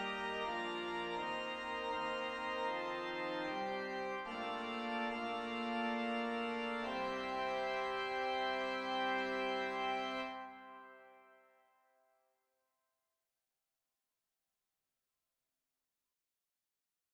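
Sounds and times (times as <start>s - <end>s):
organ: 0.0s - 11.4s.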